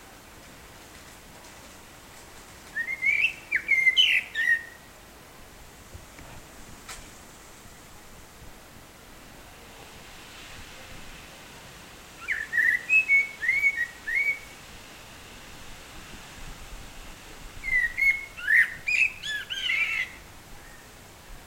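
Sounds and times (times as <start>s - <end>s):
blackbird singing: 2.8s - 4.8s, 12.2s - 14.6s, 17.6s - 20.9s.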